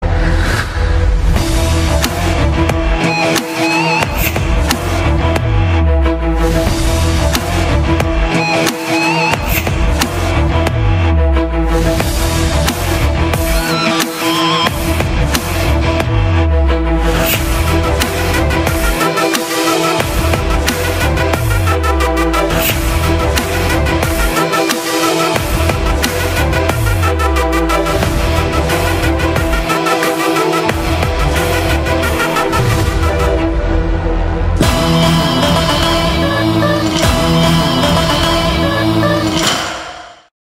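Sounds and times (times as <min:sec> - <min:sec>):
Telugu villain background music: 0:00.0 - 0:40.3.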